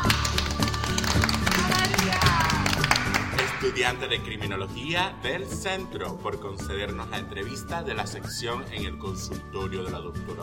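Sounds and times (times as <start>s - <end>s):
applause: 0.0s - 4.0s
speech: 3.7s - 10.4s.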